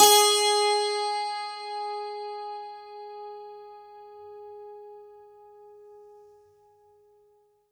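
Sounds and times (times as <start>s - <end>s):
santoor note G#3: 0.0s - 4.0s.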